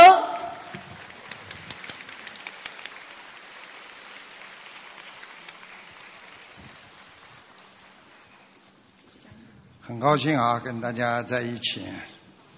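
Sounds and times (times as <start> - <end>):
audience applause: 0.7 - 8.4
speech: 9.9 - 12.2.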